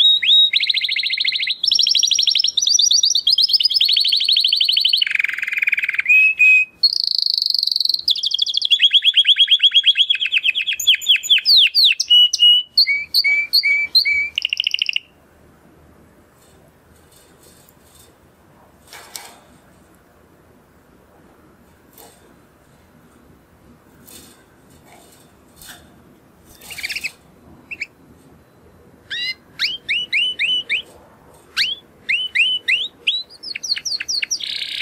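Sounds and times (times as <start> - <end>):
canary singing: 0.0 - 15.2, 26.4 - 30.9, 31.5 - 34.7.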